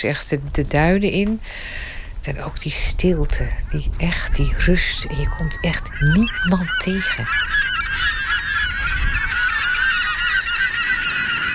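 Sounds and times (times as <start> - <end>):
speech: 0.0 - 8.2
flock of geese honking in the dunes: 2.8 - 11.5.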